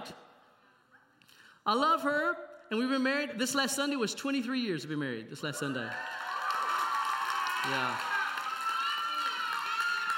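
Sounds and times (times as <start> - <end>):
speech: 1.6 - 6.2, 7.6 - 8.1
audience cheering: 5.9 - 10.1.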